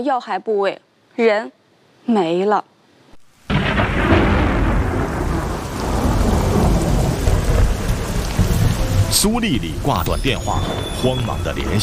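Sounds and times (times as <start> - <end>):
speech: 0.0 - 2.7, 9.1 - 11.8
rain: 3.1 - 11.8.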